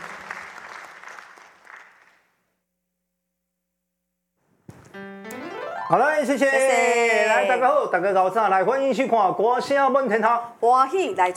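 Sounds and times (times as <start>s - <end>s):
crowd applause: 0.0s - 2.3s
speech: 5.9s - 11.3s.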